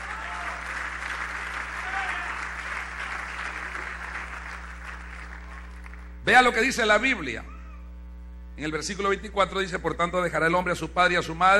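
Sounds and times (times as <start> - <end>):
audience applauding: 0.0 - 6.2
speech: 6.3 - 7.6, 8.6 - 11.5.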